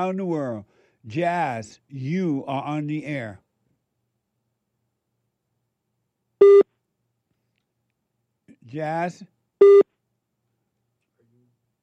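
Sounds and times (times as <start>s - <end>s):
speech: 0.0s - 3.4s, 8.6s - 9.8s
telephone line tone on a radio call-in line: 6.4s - 6.7s.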